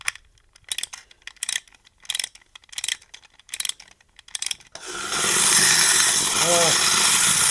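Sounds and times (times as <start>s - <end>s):
ratcheting clicks of winding a wind-up clockwork toy: 0.0s - 4.8s
wind-up clockwork toy mechanism whirring: 0.8s - 7.5s
person speaking: 6.3s - 7.0s.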